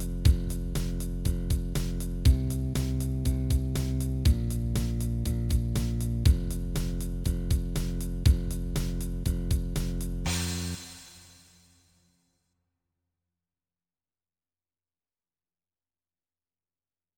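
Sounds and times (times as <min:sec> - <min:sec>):
blues bass line: 0:00.0 - 0:11.1.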